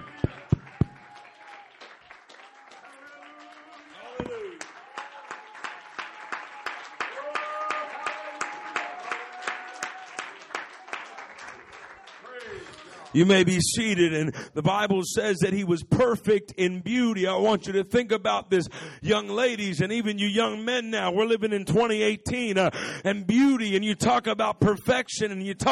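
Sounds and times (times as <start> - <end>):
audience clapping hands: 0.0 - 13.6
speech: 13.2 - 25.7.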